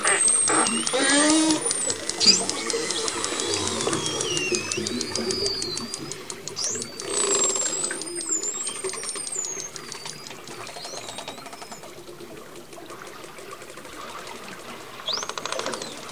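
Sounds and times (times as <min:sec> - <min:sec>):
dolphin click trains recorded underwater: 0:00.0 - 0:12.0.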